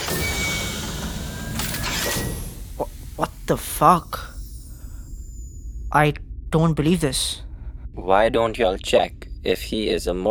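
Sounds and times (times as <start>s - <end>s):
heavy mechanical bunker door grinding open: 0.0s - 3.2s
speech: 3.5s - 4.3s, 6.0s - 7.4s, 8.0s - 10.2s.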